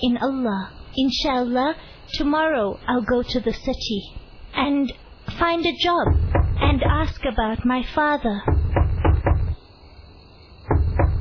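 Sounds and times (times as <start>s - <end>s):
speech: 0.0s - 8.7s
knocking on a door at night: 6.0s - 7.2s, 8.4s - 9.6s, 10.7s - 11.2s.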